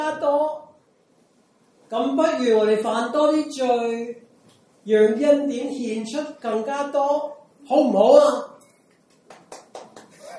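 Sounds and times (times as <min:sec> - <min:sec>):
speech: 0:01.9 - 0:04.2, 0:04.8 - 0:08.5
hand claps: 0:08.9 - 0:10.3.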